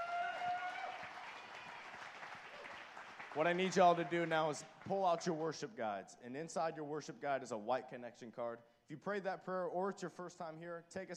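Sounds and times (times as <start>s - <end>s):
audience applause: 0.0s - 5.1s
speech: 3.4s - 11.1s.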